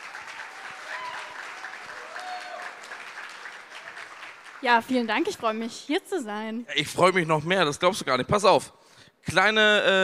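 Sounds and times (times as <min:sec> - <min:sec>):
audience applause: 0:00.0 - 0:05.4
speech: 0:04.6 - 0:10.0.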